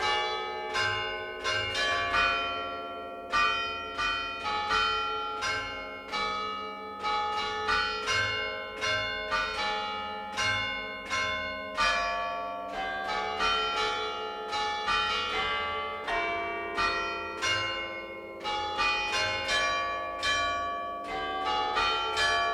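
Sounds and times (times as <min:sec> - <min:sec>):
church bells ringing in Genova Liguria: 0:00.0 - 0:22.5.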